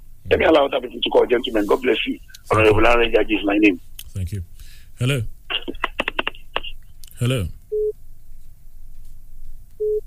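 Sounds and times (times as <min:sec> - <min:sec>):
low rumbling hum: 0:00.0 - 0:08.2
speech: 0:00.3 - 0:05.8, 0:07.2 - 0:07.6
phone line disconnect busy tone: 0:07.7 - 0:08.0, 0:09.8 - 0:10.0.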